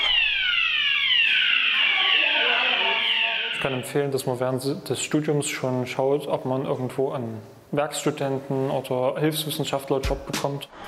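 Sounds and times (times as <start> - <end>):
fire alarm ringing: 0.0 - 4.1
speech: 3.6 - 10.8.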